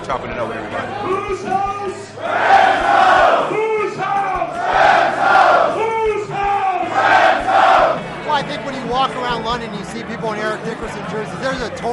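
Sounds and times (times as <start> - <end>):
speech: 0.1 - 2.9, 8.4 - 11.9
pub crowd roaring and chanting: 0.8 - 8.3.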